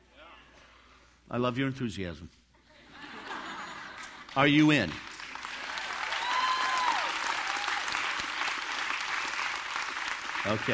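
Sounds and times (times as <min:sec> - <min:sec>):
speech: 0:01.3 - 0:02.4, 0:04.4 - 0:05.1, 0:10.4 - 0:10.7
laughter: 0:02.7 - 0:04.3
audience applause: 0:03.8 - 0:10.7.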